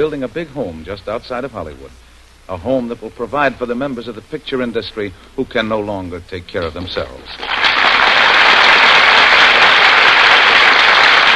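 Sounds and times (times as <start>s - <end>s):
speech: 0.0s - 7.6s
audience applause: 7.4s - 11.3s.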